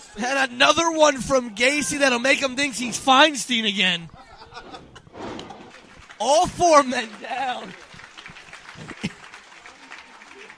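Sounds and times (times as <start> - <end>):
speech: 0.1 - 5.3, 6.2 - 7.8
wrestling arena applause: 5.5 - 10.5.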